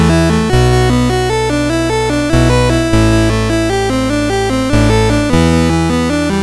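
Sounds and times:
MOS6581R4 chip gigue: 0.1 - 6.4.

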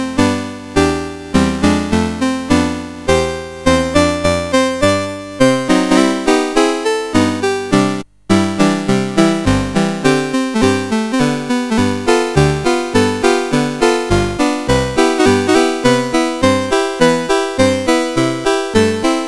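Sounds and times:
song played on a CSG8580R5 sound chip: 0.0 - 19.2.

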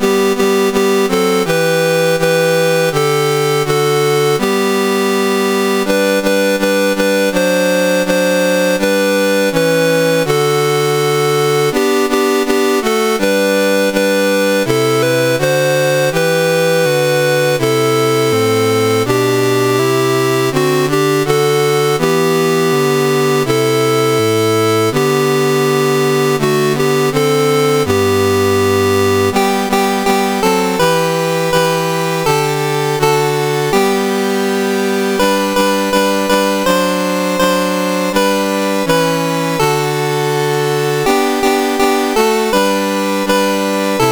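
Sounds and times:
national anthem chiptune on CSG 8580 sound chip: 0.0 - 44.1.

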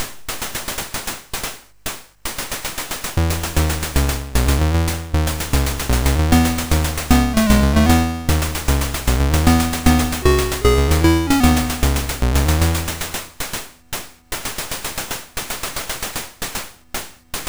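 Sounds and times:
SID chip MOS6581R4 music: 3.2 - 13.4.

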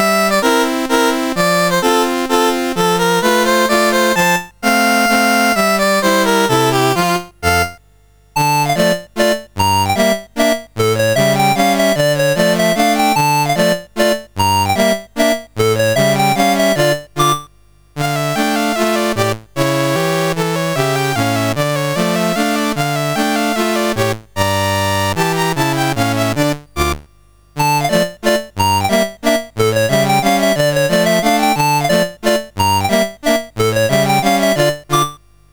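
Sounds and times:
polka mazurka music: 0.0 - 7.8, 8.4 - 17.4, 18.0 - 27.0, 27.6 - 35.2.

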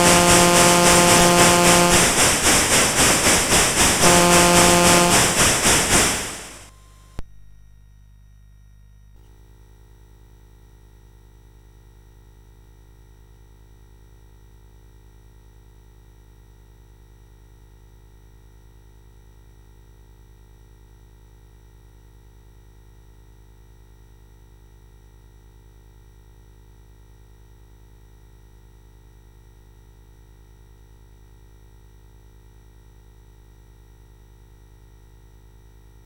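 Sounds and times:
train: 0.0 - 6.7.

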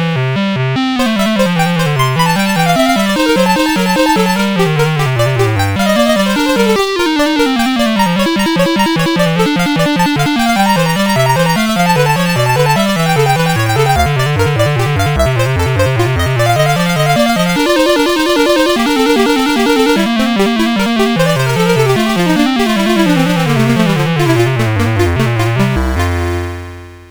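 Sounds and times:
two-part piece in F played on a CSG8580R5 sound chip: 0.0 - 27.0.

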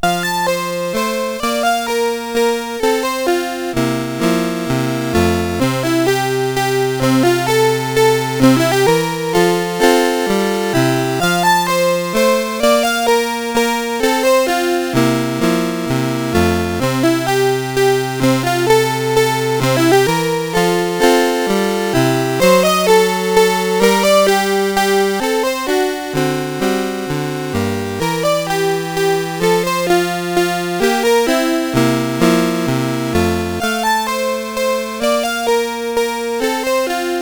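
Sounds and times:
chiptune minuet in F major on CSG8580 sound chip: 0.0 - 37.2.

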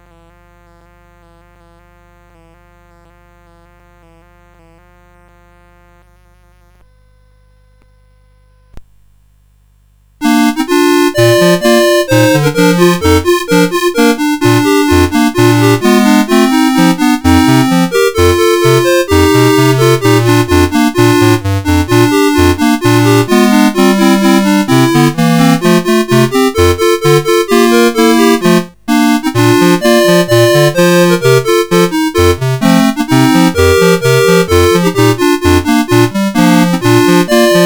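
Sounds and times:
polka music: 10.2 - 37.6.

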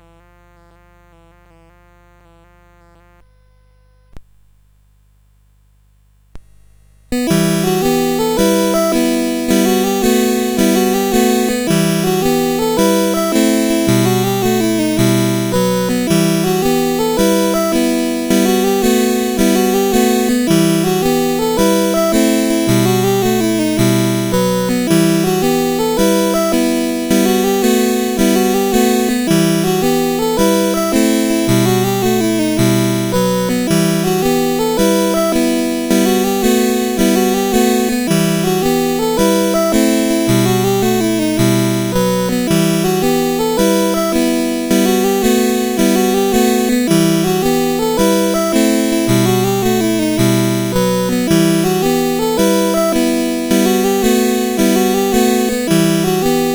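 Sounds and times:
CSG 8580 sound chip: 7.1 - 56.5.

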